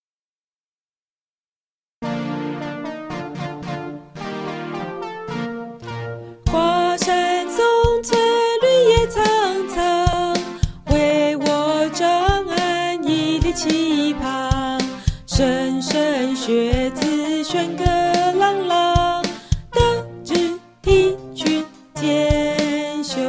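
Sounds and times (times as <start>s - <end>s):
song: 2.0s - 23.2s.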